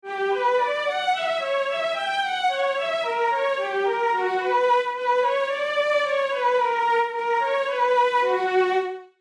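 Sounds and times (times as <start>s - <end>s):
classical MIDI melody in B minor: 0.0s - 9.2s.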